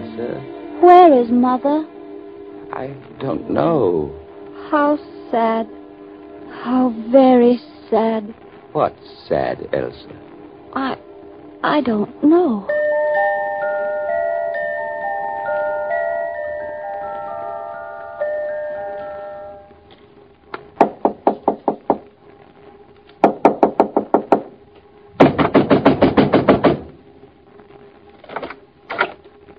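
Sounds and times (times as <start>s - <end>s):
soft sustained musical tones: 0.0s - 20.3s
speech: 0.2s - 2.0s, 2.8s - 5.8s, 6.6s - 10.2s, 10.8s - 11.0s, 11.6s - 12.8s
heavy pounding on a door: 20.8s - 22.1s, 23.2s - 24.6s, 25.2s - 27.0s.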